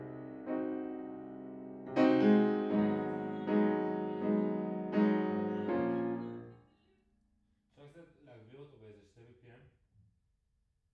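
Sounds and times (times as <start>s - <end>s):
piano in a room: 0.0s - 6.6s.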